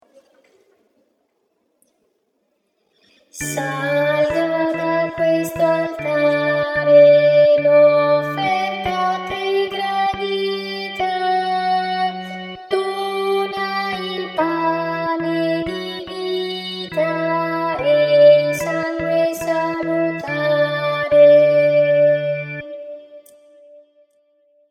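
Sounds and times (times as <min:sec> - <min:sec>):
contraltos singing: 0:03.4 - 0:22.7.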